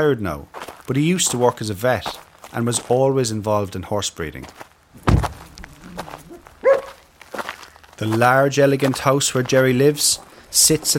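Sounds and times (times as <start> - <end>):
speech: 0.0 - 4.7, 8.0 - 10.9
dog barking: 6.3 - 7.0.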